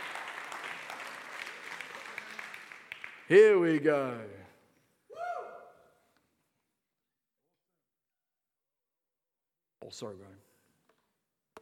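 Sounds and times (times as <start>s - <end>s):
audience applause: 0.0s - 3.8s
speech: 3.3s - 4.4s, 9.9s - 10.5s.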